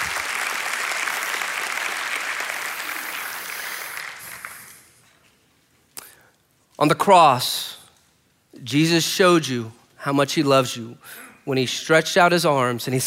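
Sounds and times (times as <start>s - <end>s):
audience applause: 0.0s - 5.0s
speech: 6.8s - 7.8s, 8.6s - 13.0s.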